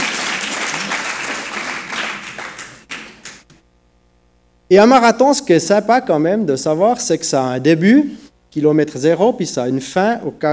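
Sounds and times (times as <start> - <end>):
audience applause: 0.0 - 3.5
speech: 4.7 - 10.5.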